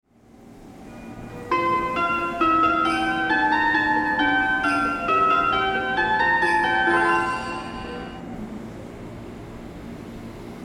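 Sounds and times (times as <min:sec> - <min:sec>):
melody: 0:01.5 - 0:08.2.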